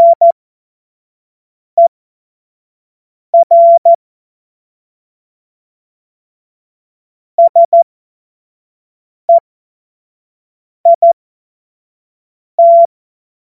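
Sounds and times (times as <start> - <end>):
Morse code course tones: 0.0 - 0.3, 3.4 - 3.9, 7.4 - 7.8, 10.9 - 11.2, 12.6 - 12.9.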